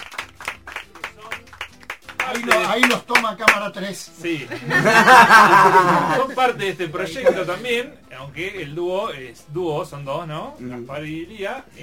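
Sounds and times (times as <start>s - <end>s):
live radio show audience clapping rhythmically for kalimba workshop leaders: 0.0s - 4.0s
speech: 2.3s - 11.8s
laughter: 4.4s - 7.7s.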